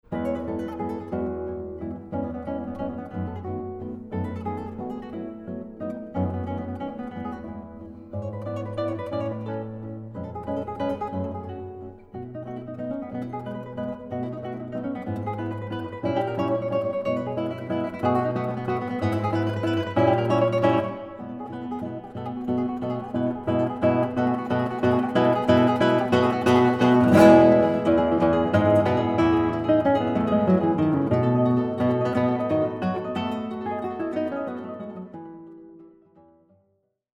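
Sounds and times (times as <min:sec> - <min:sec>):
guitar duo playing: 0:00.0 - 0:36.5.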